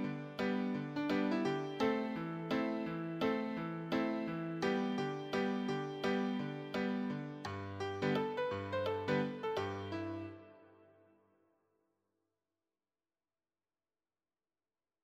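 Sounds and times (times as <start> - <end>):
solo piano: 0.0 - 11.1.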